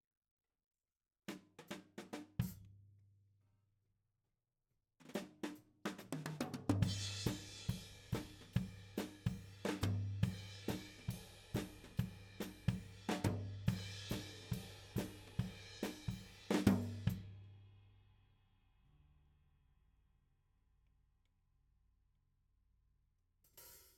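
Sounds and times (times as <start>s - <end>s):
tom drum: 5.9s - 17.2s.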